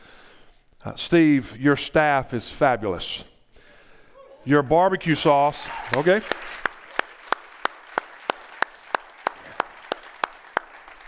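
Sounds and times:
speech: 0.8s - 3.3s, 4.4s - 6.5s
sparse audience clapping: 5.2s - 11.0s.

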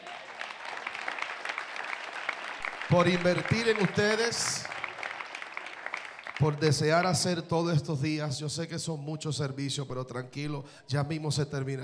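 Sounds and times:
audience applause: 0.0s - 6.6s
speech: 2.9s - 4.7s, 6.4s - 11.8s.

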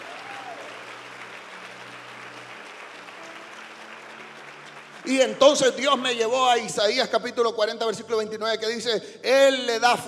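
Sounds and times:
audience applause: 0.0s - 6.7s
speech: 5.0s - 10.0s.

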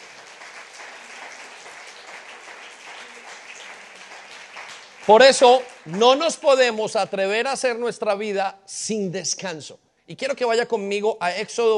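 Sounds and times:
audience applause: 0.0s - 6.9s
speech: 5.0s - 11.7s.

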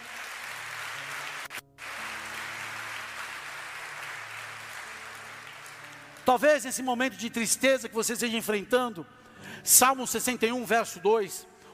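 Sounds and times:
audience applauding: 0.0s - 6.4s
speech: 6.3s - 11.7s.

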